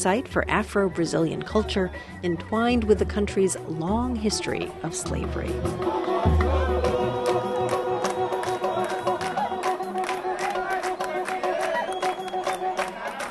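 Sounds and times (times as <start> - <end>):
speech: 0.0 - 6.8
crowd chatter at samba gathering: 4.2 - 13.3
sharp claps or percussive hits: 5.7 - 13.3.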